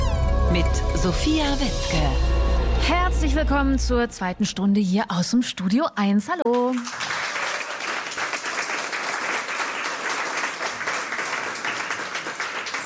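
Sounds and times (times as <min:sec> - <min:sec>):
speech: 0:00.5 - 0:07.0
applause: 0:06.4 - 0:12.8.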